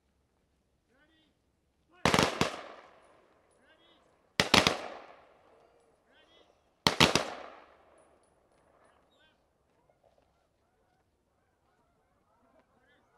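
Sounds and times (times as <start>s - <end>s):
ceremonial rifle salute gunfire: 2.0s - 3.3s, 4.4s - 5.5s, 6.8s - 8.0s.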